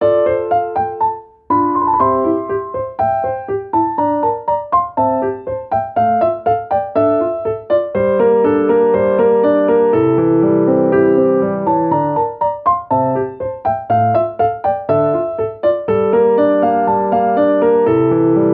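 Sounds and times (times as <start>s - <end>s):
piano: 0.0s - 18.5s.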